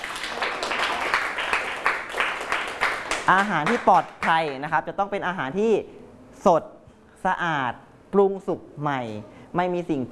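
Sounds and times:
group applauding for a classmate: 0.0 - 4.7
speech: 3.3 - 10.1.

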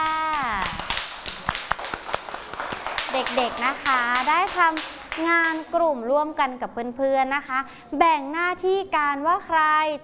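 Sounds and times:
children clapping hands: 0.0 - 5.7
speech: 3.1 - 10.0.

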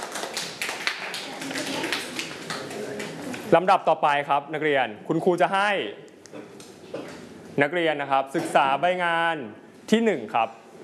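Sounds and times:
students clapping hands: 0.0 - 3.2
speech: 3.5 - 6.5, 7.6 - 10.6.

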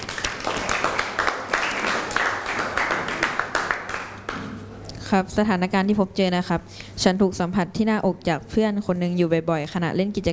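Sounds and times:
crowd clapping for student representatives: 0.0 - 4.5
speech: 5.1 - 10.3.

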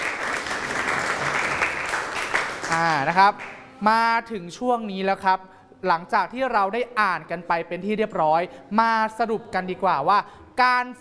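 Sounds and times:
children clapping: 0.0 - 3.6
speech: 2.7 - 11.0.

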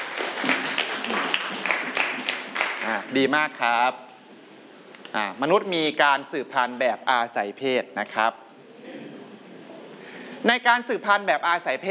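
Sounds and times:
classroom clapping: 0.0 - 3.1
speech: 2.9 - 4.1, 5.1 - 8.4, 10.4 - 11.8.

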